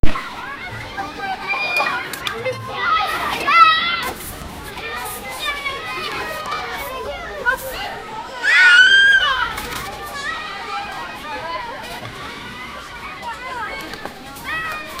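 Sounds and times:
kids playing in a playground: 0.0s - 14.9s.

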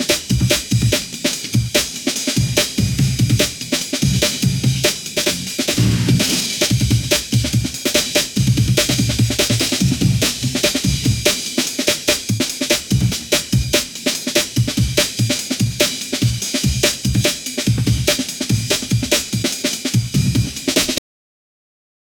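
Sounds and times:
145 bpm drum and bass music: 0.0s - 21.0s.

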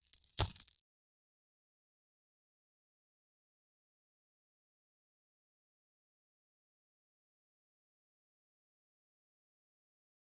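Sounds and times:
gold coins falling: 0.0s - 0.7s.

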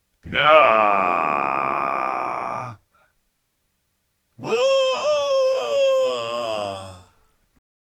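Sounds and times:
sad man groaning ohhh: 0.3s - 2.8s, 4.4s - 7.2s.

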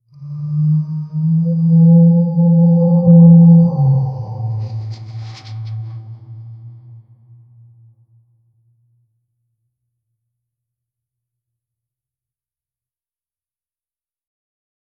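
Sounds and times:
eerie cawing: 0.1s - 7.2s.

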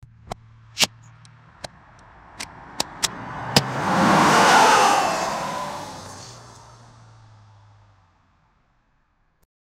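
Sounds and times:
man having accidents: 3.4s - 6.9s.

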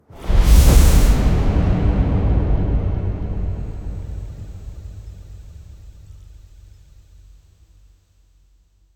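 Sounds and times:
energy explosion: 0.3s - 6.4s.

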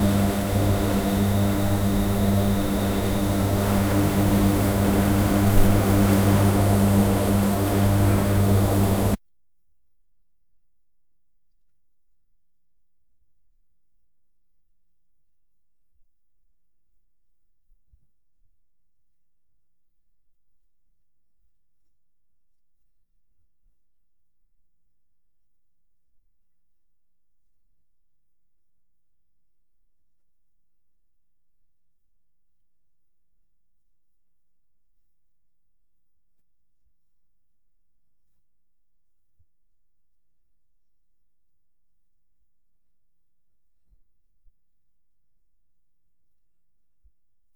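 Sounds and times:
weak light bulb buzzing in a shop: 0.0s - 9.2s.

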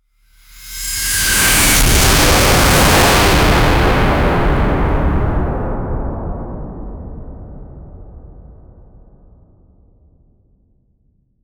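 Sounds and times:
overwhelming air noise: 0.5s - 5.7s.

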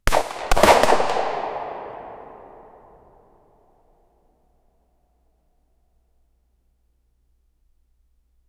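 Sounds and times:
Colt Python .357 Magnum revolver gunshot in a small room: 0.1s - 3.0s.

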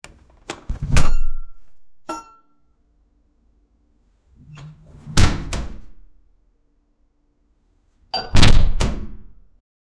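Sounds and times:
door opening: 4.4s - 6.0s, 8.2s - 9.2s.

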